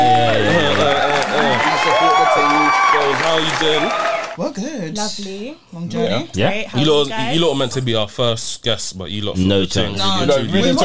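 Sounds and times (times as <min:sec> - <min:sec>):
audience applause for two guests: 0:00.0 - 0:04.4
audience voices whooping and calling out: 0:00.0 - 0:04.4
speech: 0:03.4 - 0:10.8.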